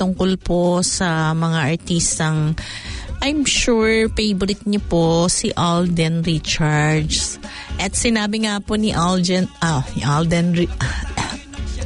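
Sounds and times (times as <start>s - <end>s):
speech: 0.0s - 11.2s
person with a slight cough coughing: 10.8s - 11.5s.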